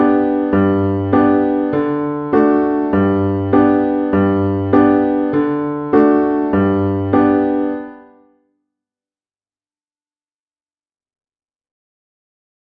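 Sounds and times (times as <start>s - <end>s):
musical accompaniment in the key of G: 0.0s - 8.1s.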